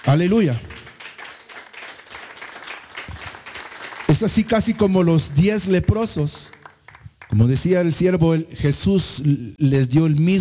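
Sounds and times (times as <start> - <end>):
speech: 0.0 - 0.7, 4.1 - 6.6, 7.3 - 10.4
church congregation clapping for the Lord during a Spanish-language service: 0.0 - 7.7.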